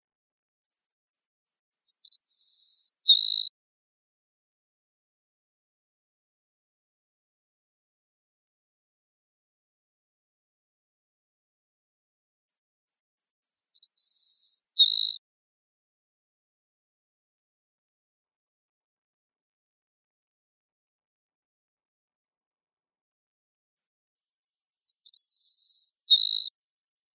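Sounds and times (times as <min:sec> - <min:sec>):
Savannah sparrow singing: 0:00.8 - 0:03.5, 0:12.9 - 0:15.2, 0:23.8 - 0:26.5.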